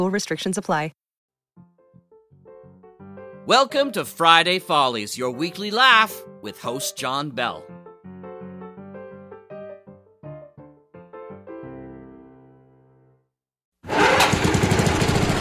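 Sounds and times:
speech: 0.0s - 1.0s, 3.5s - 7.8s
lawn mower running: 13.9s - 15.3s.

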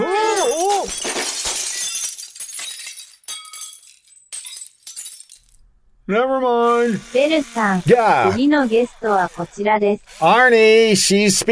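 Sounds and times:
crystal figurines smashing: 0.0s - 5.6s
crystal shards tinkling: 0.0s - 5.6s
speech: 6.1s - 11.4s.

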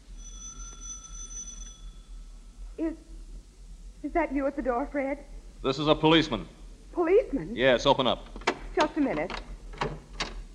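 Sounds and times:
low hum: 0.0s - 10.5s
doorbell ringing: 0.1s - 2.1s
speech: 2.8s - 3.1s, 4.0s - 10.0s.

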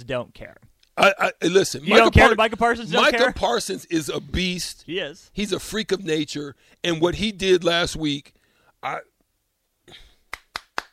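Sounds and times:
speech: 0.0s - 9.1s, 9.9s - 10.1s
hand clap: 10.2s - 10.9s.

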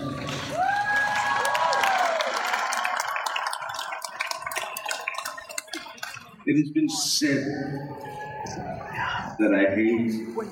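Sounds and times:
crowd cheering and whooping: 0.0s - 6.0s, 7.6s - 9.4s
crowd applauding: 0.0s - 6.4s
speech: 6.5s - 10.5s.

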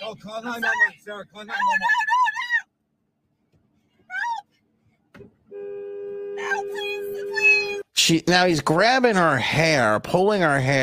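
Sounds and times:
speech: 0.2s - 2.2s, 8.1s - 10.8s
car horn honking: 5.4s - 7.8s.

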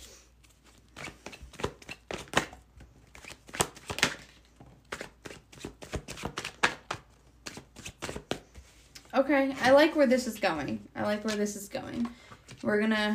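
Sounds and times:
tarot cards being shuffled and drawn during a reading: 0.1s - 9.0s
speech: 9.2s - 13.1s.

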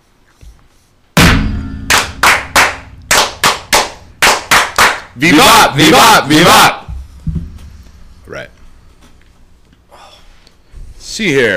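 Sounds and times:
brethren in a Masonic lodge clapping in unison for the ritual fire: 1.9s - 5.2s
speech: 5.2s - 6.8s, 11.2s - 11.5s.

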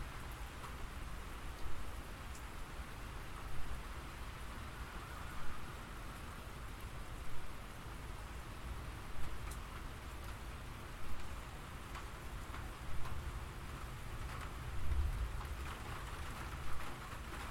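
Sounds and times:
gentle rain pattering: 0.0s - 17.4s.

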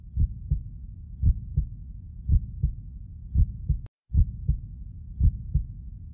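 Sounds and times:
heartbeat heard through a digital stethoscope: 0.0s - 5.8s.

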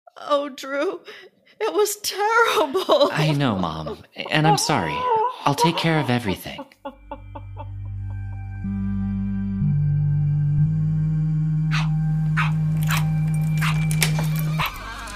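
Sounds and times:
speech: 0.2s - 7.0s
laughter: 2.5s - 8.5s
dog barking and whimpering: 4.2s - 7.1s, 11.7s - 15.0s
steady low hum: 7.0s - 14.6s.

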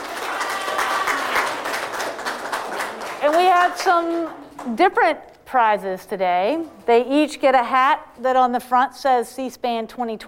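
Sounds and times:
audience applause: 0.0s - 4.4s
speech: 3.2s - 10.2s.

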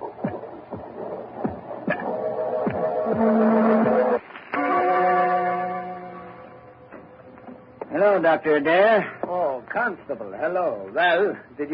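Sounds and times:
heartbeat effect of a telltale heart beating beneath the floor: 0.0s - 4.2s
sustained droning tones: 0.0s - 8.0s
speech: 8.1s - 11.7s.

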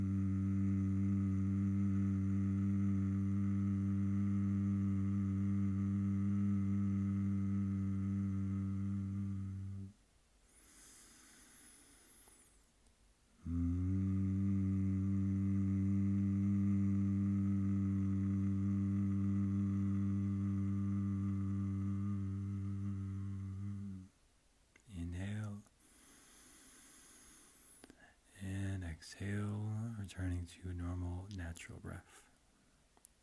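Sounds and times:
sustained humming of the M sound: 0.0s - 10.0s, 13.4s - 24.1s, 27.8s - 31.9s
speech: 30.5s - 32.3s.

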